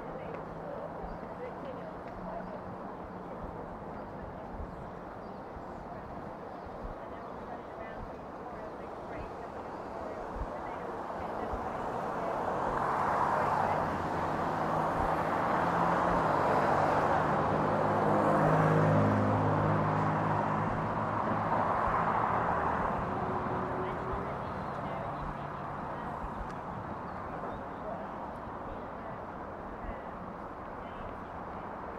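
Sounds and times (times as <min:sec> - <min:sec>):
murmur of voices in Lafayette Square: 0:00.0 - 0:20.8, 0:21.8 - 0:31.9
traffic near the White House: 0:00.0 - 0:31.9
vehicle passing with a low engine hum: 0:10.7 - 0:30.6.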